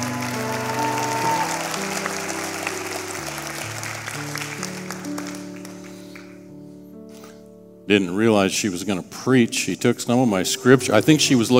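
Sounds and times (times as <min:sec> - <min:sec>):
audience applause: 0:00.0 - 0:06.4
speech: 0:07.9 - 0:11.5.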